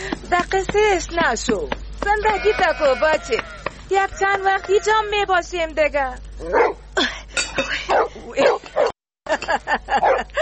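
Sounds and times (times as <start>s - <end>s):
speech: 0.3s - 6.8s
dog barking near a tent: 6.5s - 6.8s, 7.9s - 9.0s, 10.0s - 10.3s.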